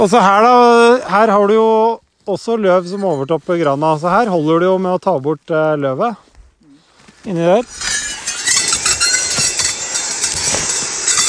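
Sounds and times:
speech: 0.0s - 6.3s, 7.2s - 8.0s
electric brush cutter cutting through brush: 7.7s - 11.2s.

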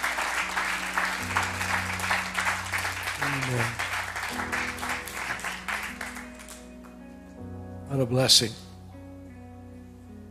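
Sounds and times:
crowd applause: 0.0s - 7.0s
speech: 3.3s - 4.8s, 7.9s - 8.6s.

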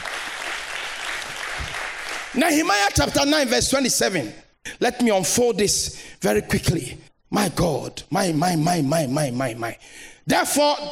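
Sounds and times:
audience clapping: 0.0s - 2.6s
speech: 2.3s - 10.9s.

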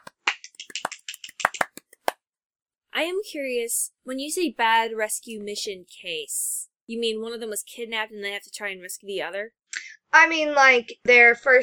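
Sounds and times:
hands clapping: 0.0s - 2.2s
speech: 3.0s - 11.6s.

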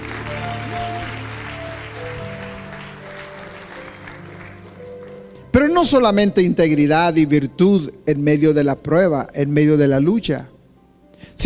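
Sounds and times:
audience applauding: 0.0s - 5.5s
speech: 5.6s - 10.5s.

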